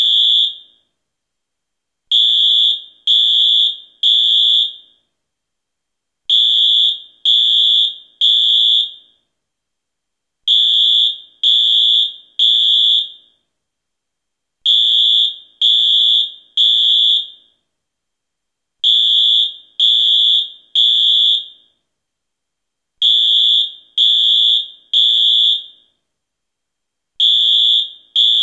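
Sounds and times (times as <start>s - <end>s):
fire alarm: 0.0s - 0.9s, 2.1s - 5.2s, 6.3s - 9.3s, 10.4s - 13.5s, 14.6s - 17.7s, 18.8s - 21.9s, 23.0s - 26.0s, 27.2s - 28.4s.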